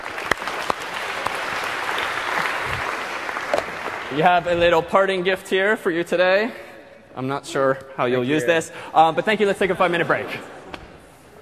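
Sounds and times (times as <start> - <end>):
audience applause: 0.0 - 4.6
speech: 4.1 - 6.6, 7.2 - 10.6.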